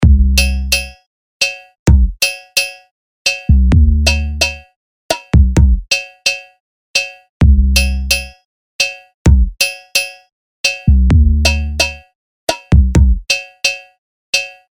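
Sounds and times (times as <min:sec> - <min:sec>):
music beat: 0:00.0 - 0:14.6.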